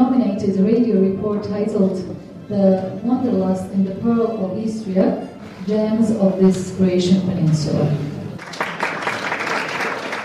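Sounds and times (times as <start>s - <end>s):
speech: 0.4s - 8.6s
applause at an awards ceremony: 8.4s - 10.2s.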